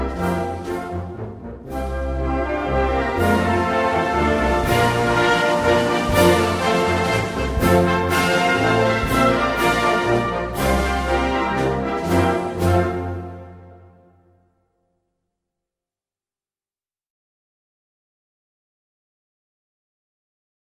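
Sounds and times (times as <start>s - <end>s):
instrumental version of a national anthem: 0.0s - 14.4s.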